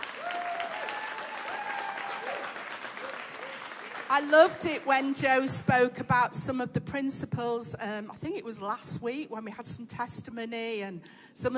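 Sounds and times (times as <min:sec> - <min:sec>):
audience applause: 0:00.0 - 0:04.9
speech: 0:04.1 - 0:11.5.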